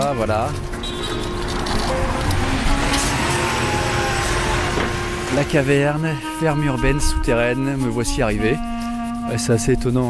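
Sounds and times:
dense urban street traffic with passing cars: 0:00.0 - 0:07.2
speech: 0:00.1 - 0:01.2, 0:05.3 - 0:08.7, 0:09.3 - 0:10.0.

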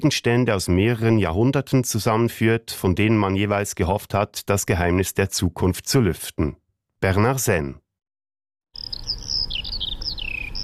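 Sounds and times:
speech: 0:00.0 - 0:07.8
Eurasian skylark singing: 0:08.8 - 0:10.6.

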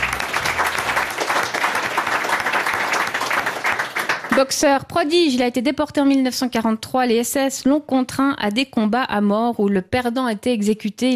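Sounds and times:
audience applause: 0:00.0 - 0:04.5
speech: 0:04.4 - 0:11.1.

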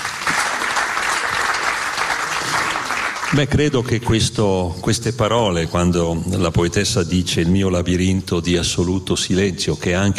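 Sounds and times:
audience clapping for a poet at a poetry reading: 0:00.0 - 0:03.9
speech: 0:03.3 - 0:10.1.

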